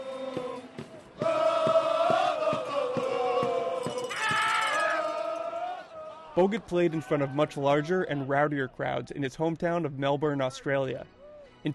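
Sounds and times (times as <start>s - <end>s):
arena crowd organized chanting: 0.0s - 7.6s
speech: 6.4s - 11.7s.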